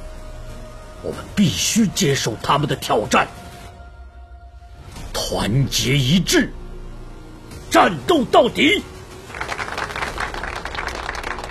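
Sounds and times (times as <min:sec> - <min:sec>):
speech: 0:01.0 - 0:03.4, 0:05.3 - 0:06.6, 0:07.7 - 0:08.9
enthusiastic audience applause at a gathering: 0:09.3 - 0:11.4.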